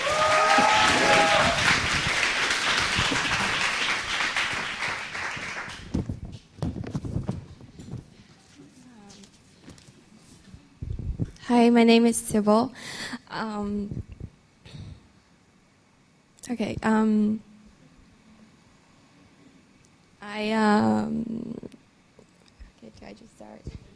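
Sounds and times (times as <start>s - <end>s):
audience applause welcoming a speaker at a church gathering: 0.0s - 6.0s
speech: 11.6s - 14.1s, 16.5s - 17.5s, 20.4s - 21.5s.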